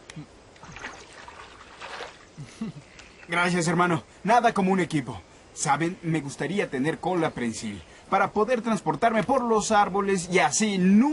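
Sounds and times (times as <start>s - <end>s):
running water over a pear being washed: 0.6s - 3.5s
speech: 2.6s - 11.1s.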